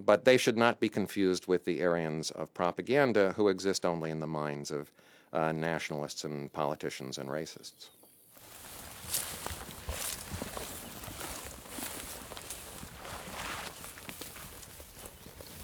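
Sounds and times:
speech: 0:00.0 - 0:08.0, 0:09.1 - 0:09.6
footsteps through grass and shrub along the outer wall of Akraim: 0:08.3 - 0:15.6
faint brushing of vegetation: 0:08.4 - 0:15.6.

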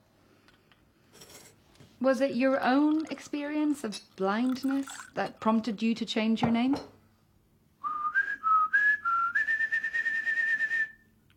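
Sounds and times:
speech: 0:02.0 - 0:07.0
person whistling a blackbird's song: 0:07.8 - 0:11.1.

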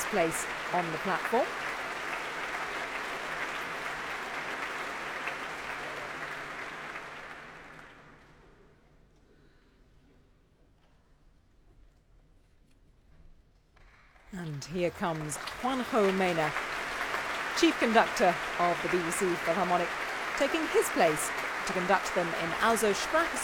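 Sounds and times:
concert hall audience applause: 0:00.0 - 0:08.4, 0:14.4 - 0:23.4
speech: 0:00.1 - 0:01.7, 0:14.6 - 0:16.7, 0:17.6 - 0:23.4.

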